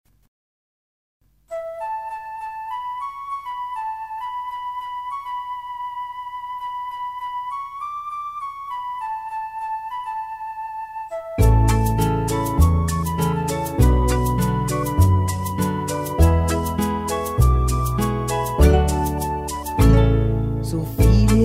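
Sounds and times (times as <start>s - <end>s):
song: 1.5s - 21.4s.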